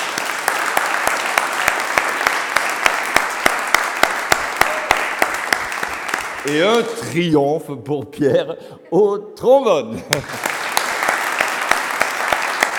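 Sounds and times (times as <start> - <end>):
audience applause: 0.0 - 7.2, 10.1 - 12.7
speech: 6.4 - 10.5.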